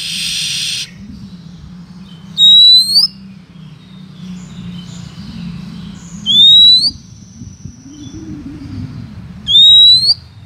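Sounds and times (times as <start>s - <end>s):
Oriental magpie-robin rising whistle: 0.0s - 1.0s, 2.4s - 3.2s, 6.2s - 7.0s, 9.5s - 10.2s.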